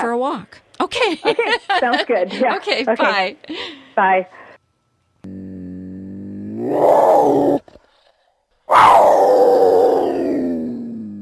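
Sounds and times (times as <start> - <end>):
speech: 0.0 - 4.4, 6.6 - 7.4
cougar (Puma concolor, mountain lion) throaty call: 6.5 - 7.6, 8.7 - 10.8.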